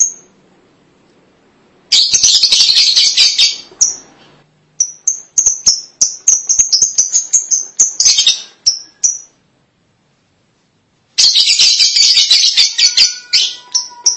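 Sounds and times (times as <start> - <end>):
lovebird calls: 1.9 - 4.2, 4.8 - 9.4, 11.2 - 14.1.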